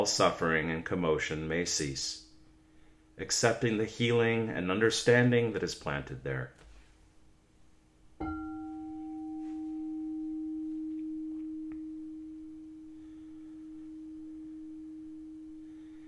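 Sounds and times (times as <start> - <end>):
speech: 0.0 - 2.2, 3.2 - 6.6
meditation bell ringing: 8.2 - 16.0.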